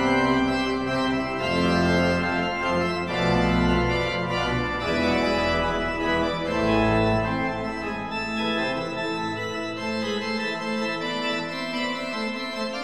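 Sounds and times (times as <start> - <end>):
organ playing a toccata: 0.0 - 12.8.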